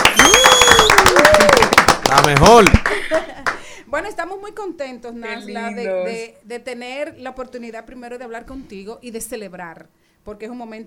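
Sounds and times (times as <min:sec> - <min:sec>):
studio audience applause: 0:00.0 - 0:03.7
speech: 0:02.3 - 0:10.8
laughter: 0:02.7 - 0:03.6
voice calling out in a drawn-out rising tone: 0:05.2 - 0:06.3.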